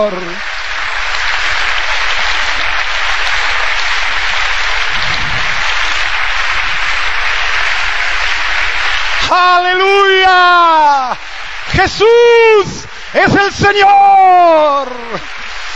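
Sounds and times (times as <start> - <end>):
speech: 0.0 - 0.6, 9.3 - 11.2, 11.8 - 15.3
crowd applauding: 0.0 - 15.7.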